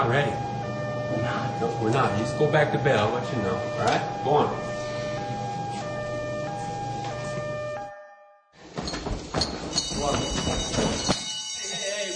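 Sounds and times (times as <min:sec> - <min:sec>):
fire station alarm siren: 0:00.0 - 0:08.6, 0:09.7 - 0:12.1
speech: 0:00.1 - 0:00.5, 0:01.1 - 0:04.7.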